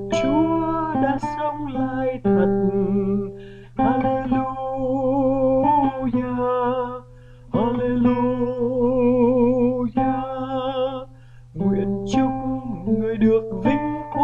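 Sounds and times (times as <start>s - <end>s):
tenor singing: 0.1s - 14.2s.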